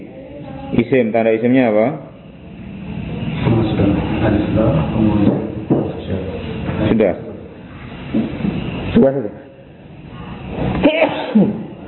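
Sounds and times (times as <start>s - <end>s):
low steady hum: 0.0s - 11.8s
speech: 0.7s - 2.1s, 4.2s - 7.3s, 8.1s - 9.4s, 10.6s - 11.6s
sneeze: 10.8s - 11.6s.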